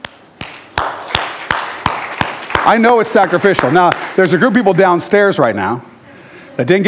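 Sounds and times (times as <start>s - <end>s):
audience applause: 0.8s - 4.4s
speech: 2.6s - 5.9s, 6.6s - 6.8s.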